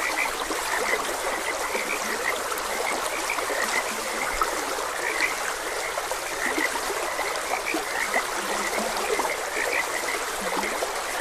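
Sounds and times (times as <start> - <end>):
flowing water: 0.0 - 11.1
frogs croaking: 0.0 - 11.1.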